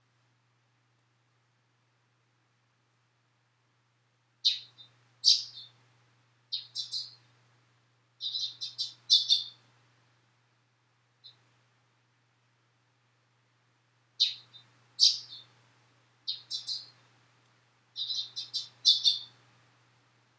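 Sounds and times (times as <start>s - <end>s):
faint low hum: 0.0s - 20.3s
sparrow chirping: 4.4s - 5.8s, 6.5s - 7.2s, 8.2s - 9.6s, 14.2s - 15.5s, 16.2s - 16.9s, 18.0s - 19.3s.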